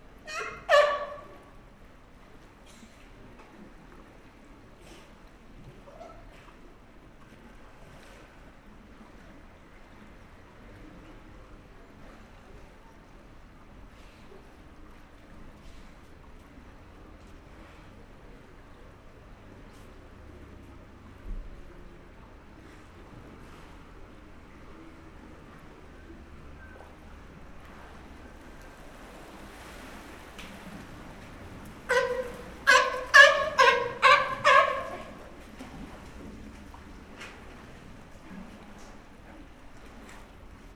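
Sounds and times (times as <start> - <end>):
California sea lion calling at a zoo: 0.1 - 1.8, 5.8 - 6.4, 30.5 - 37.0.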